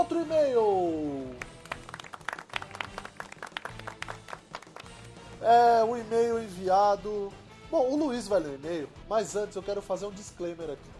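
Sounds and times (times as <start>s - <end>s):
speech: 0.0s - 1.3s, 5.4s - 10.9s
canned electronic applause sound effect: 1.2s - 5.2s.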